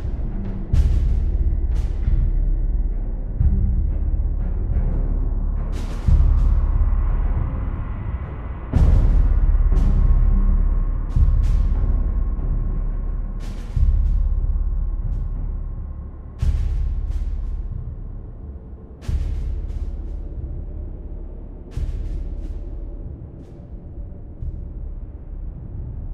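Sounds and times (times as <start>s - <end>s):
music ambience: 0.0s - 26.1s.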